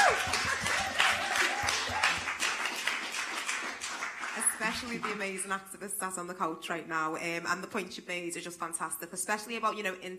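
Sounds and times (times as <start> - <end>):
round of applause: 0.0 - 5.4
speech: 4.8 - 10.1.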